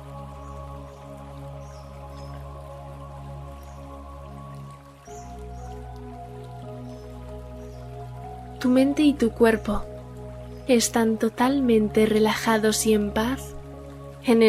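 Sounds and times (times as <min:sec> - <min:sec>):
babbling stream water: 0:00.0 - 0:14.4
speech: 0:08.6 - 0:09.9, 0:10.7 - 0:13.6, 0:14.2 - 0:14.4.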